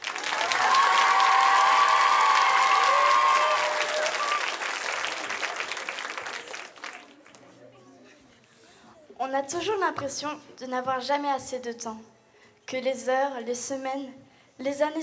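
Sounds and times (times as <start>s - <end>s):
audience clapping: 0.0s - 7.5s
whoops and cheers: 0.1s - 5.6s
speech: 9.3s - 15.0s.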